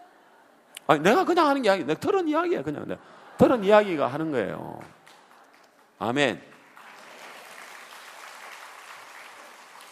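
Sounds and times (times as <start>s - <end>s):
speech: 0.9s - 5.0s, 6.0s - 6.5s
audience applauding: 4.9s - 9.9s.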